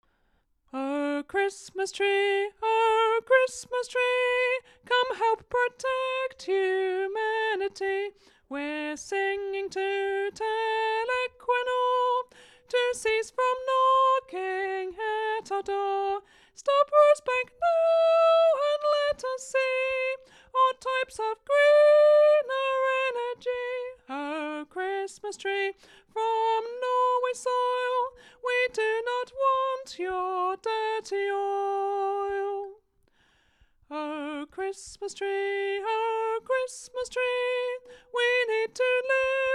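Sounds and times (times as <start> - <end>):
soprano singing: 0.7 - 32.9, 33.9 - 39.5.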